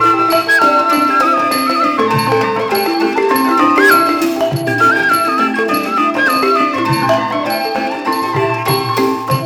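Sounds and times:
Thai orchestra: 0.0s - 9.4s.

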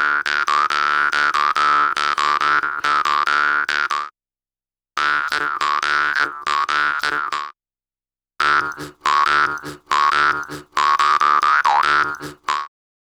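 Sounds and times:
didgeridoo: 0.2s - 3.9s, 5.0s - 7.5s, 8.4s - 12.7s
overtone singing: 8.4s - 12.6s.

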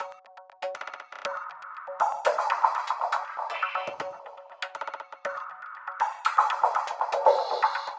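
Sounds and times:
hi-hat beats: 2.0s - 7.9s.

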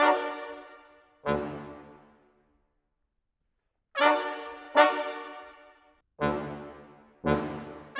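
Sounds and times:
brass instruments: 0.0s - 2.2s, 4.0s - 7.9s.

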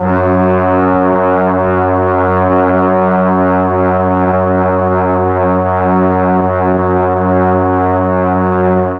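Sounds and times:
Mellotron brass note F#2: 0.0s - 8.9s.

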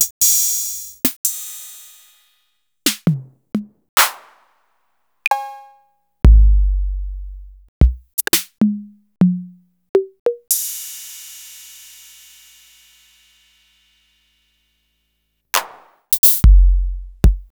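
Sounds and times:
Roland MV8800 TR-808 drum machine: 0.0s - 2.0s, 2.9s - 4.4s, 5.3s - 5.7s, 6.3s - 10.8s, 15.6s - 17.5s.

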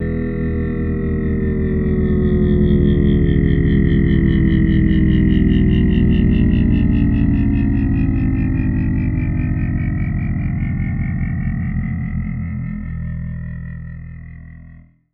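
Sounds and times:
tugboat: 0.0s - 14.0s.

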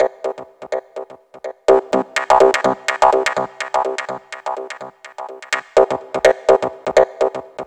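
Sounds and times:
house synth loops: 0.0s - 7.6s.

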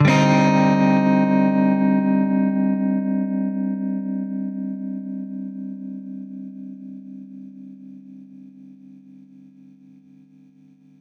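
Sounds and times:
baritone guitar chord Cmin add9: 0.0s - 7.9s.

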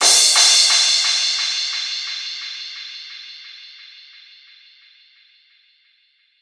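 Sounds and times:
drum and bass crash cymbal: 0.0s - 6.4s.

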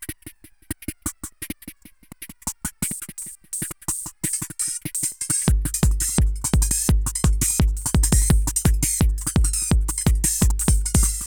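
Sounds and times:
techno loops with echo: 3.9s - 11.3s.

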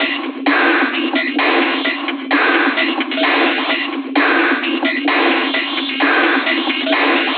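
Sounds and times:
beat loop: 0.0s - 7.3s.

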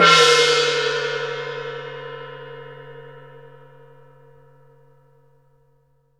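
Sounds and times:
gong: 0.0s - 4.4s.

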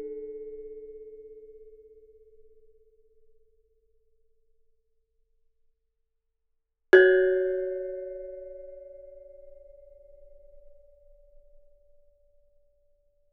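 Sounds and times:
gamelan: 7.0s - 9.5s.

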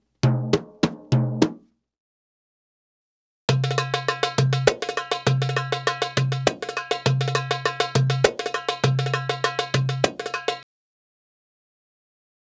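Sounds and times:
Arabic rhythm percussion: 0.2s - 1.7s, 3.5s - 10.6s.

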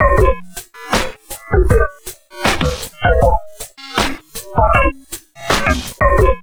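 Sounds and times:
crazy processed drum loops at 80 bpm: 0.0s - 6.4s.

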